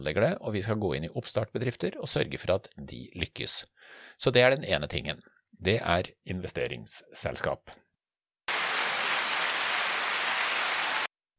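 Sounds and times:
speech: 0.0s - 7.8s
audience applause: 8.5s - 11.1s.

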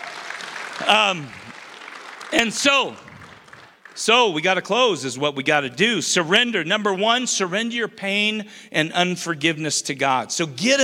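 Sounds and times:
crowd audience hand clapping: 0.0s - 4.6s
speech: 0.8s - 1.4s, 2.3s - 3.1s, 4.0s - 10.8s.

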